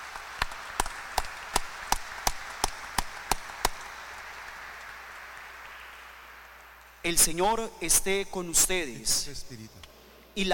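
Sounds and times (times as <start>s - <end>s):
audience applause: 0.0s - 7.0s
speech: 7.0s - 9.8s, 10.4s - 10.5s.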